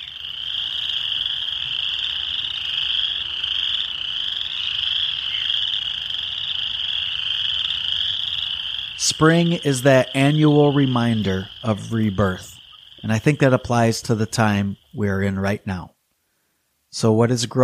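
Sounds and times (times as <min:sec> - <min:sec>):
chorus of spring peeper frogs peeping in Michigan: 0:00.0 - 0:15.9
speech: 0:09.1 - 0:15.9, 0:16.9 - 0:17.6.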